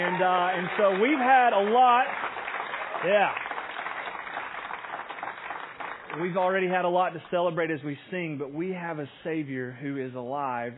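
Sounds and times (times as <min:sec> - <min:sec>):
speech: 0:00.0 - 0:02.4, 0:03.0 - 0:03.5, 0:06.1 - 0:10.7
audience cheering and clapping: 0:00.0 - 0:06.6.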